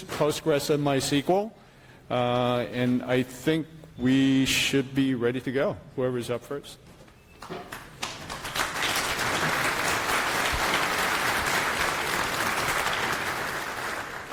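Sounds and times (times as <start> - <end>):
speech: 0.0 - 7.8
audience clapping: 7.4 - 14.3.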